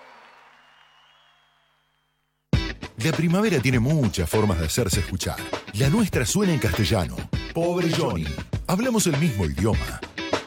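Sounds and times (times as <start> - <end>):
applause: 0.0 - 2.3
speech: 3.0 - 10.1.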